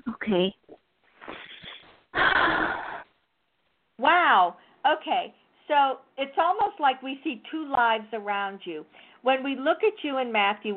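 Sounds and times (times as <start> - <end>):
speech: 0.3 - 0.6, 4.3 - 10.7
deep breath in during a guided spiritual energy session: 2.2 - 3.1.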